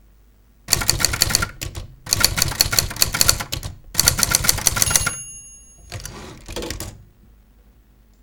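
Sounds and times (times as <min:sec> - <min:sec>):
typewriter: 0:00.7 - 0:07.1.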